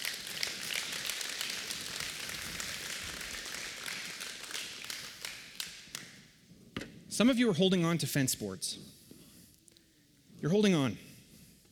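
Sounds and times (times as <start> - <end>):
audience applause: 0.0 - 5.5
speech: 7.2 - 9.0, 10.4 - 11.1.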